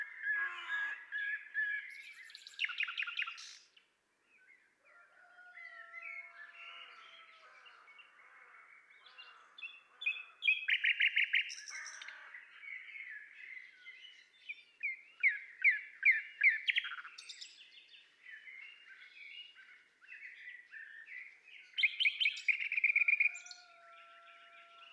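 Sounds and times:
common nightingale singing: 0.0 - 3.6, 10.0 - 11.8, 13.0 - 19.6, 20.2 - 24.3.

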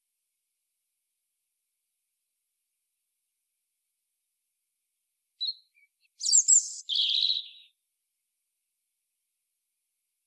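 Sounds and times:
European robin singing: 5.4 - 7.8.

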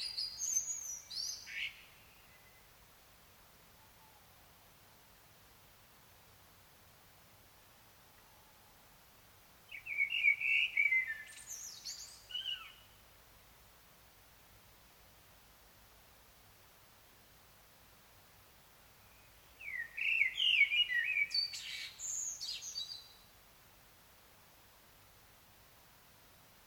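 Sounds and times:
common blackbird singing: 0.0 - 2.6, 9.7 - 12.9, 19.1 - 23.2.

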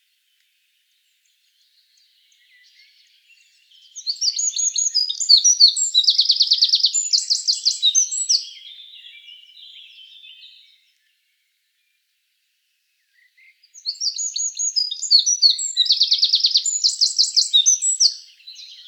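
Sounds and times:
Eurasian wren Troglodytes troglodytes singing high sharp notes and rattling trills: 3.9 - 10.6, 13.7 - 18.8.

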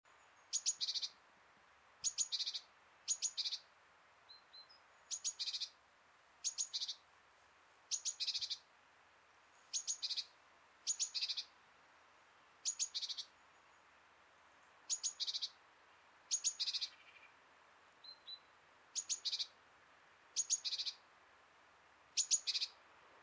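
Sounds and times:
great tit calling: 0.3 - 1.2, 2.0 - 3.6, 4.4 - 5.8, 6.4 - 7.0, 7.9 - 8.7, 9.7 - 11.5, 12.6 - 13.8, 14.9 - 15.6, 16.3 - 17.4, 18.0 - 19.6, 20.4 - 21.0, 22.2 - 22.8.

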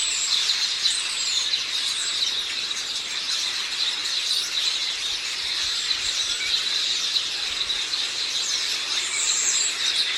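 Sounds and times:
many birds chirping: 0.0 - 10.1.

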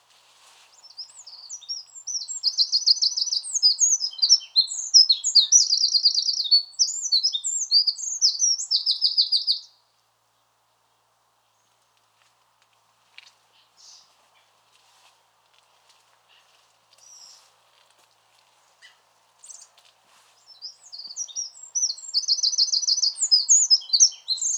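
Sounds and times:
Eurasian wren singing: 0.8 - 9.7, 20.5 - 24.5.

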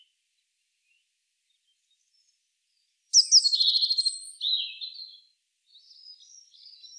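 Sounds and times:
Eurasian blue tit scolding call: 3.2 - 4.8.

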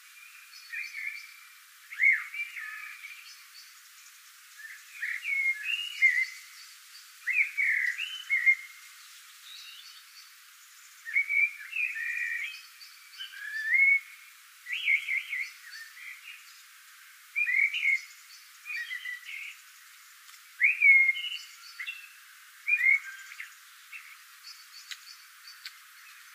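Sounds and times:
common blackbird singing: 0.0 - 16.7, 17.3 - 19.6, 20.6 - 26.3.

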